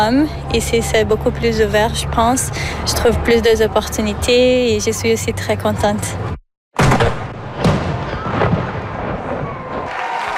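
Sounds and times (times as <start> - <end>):
speech: 0.0 - 6.4
cannon shots from a 21-gun salute: 6.8 - 9.9.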